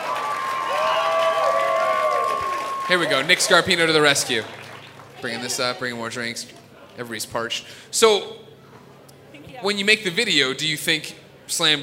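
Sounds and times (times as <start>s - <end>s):
audience applause: 0.0s - 6.0s
speech: 2.9s - 4.6s, 5.2s - 8.5s, 9.6s - 11.8s.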